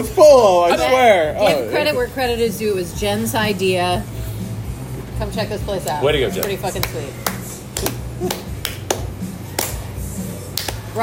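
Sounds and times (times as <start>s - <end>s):
speech: 0.0s - 4.3s, 5.2s - 8.5s
hand clapping: 5.8s - 11.0s.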